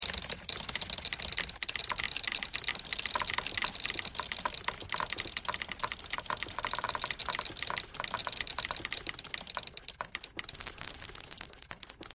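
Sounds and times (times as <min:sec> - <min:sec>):
typewriter: 0:00.0 - 0:12.1.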